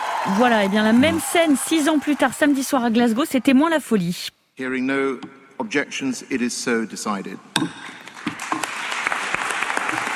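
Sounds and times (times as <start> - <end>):
applause at a plenary session of the COP26 climate conference in Glasgow: 0.0 - 3.3, 8.2 - 10.1
speech: 0.2 - 8.0.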